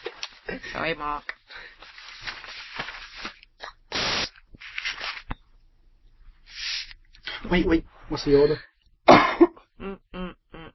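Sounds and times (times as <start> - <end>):
speech: 0.8 - 1.3, 7.5 - 8.7, 9.8 - 10.1
paper rustling and crinkling: 1.6 - 3.5, 4.6 - 5.4.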